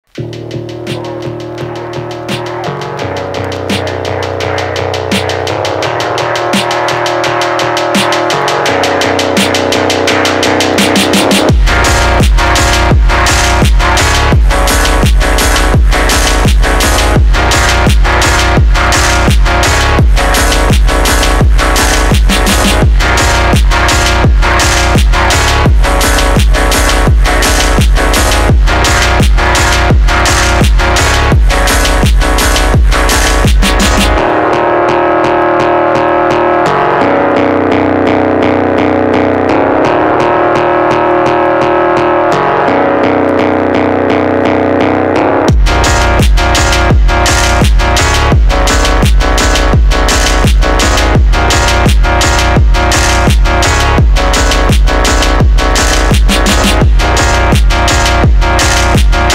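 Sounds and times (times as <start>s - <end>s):
slowed phonk music: 0.0s - 59.3s.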